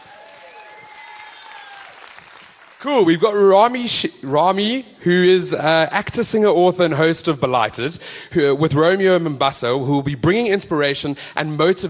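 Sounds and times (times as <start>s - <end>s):
round of applause: 0.0s - 3.1s
speech: 2.8s - 11.8s.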